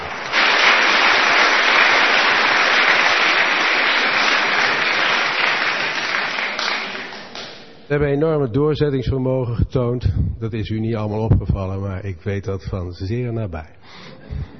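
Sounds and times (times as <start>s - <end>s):
audience applause: 0.0s - 7.8s
speech: 7.9s - 14.5s.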